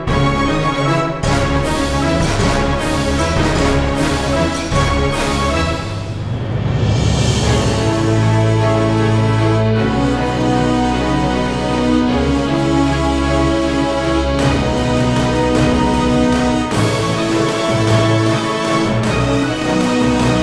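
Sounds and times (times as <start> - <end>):
battle orchestral brass ensemble: 0.0 - 20.4.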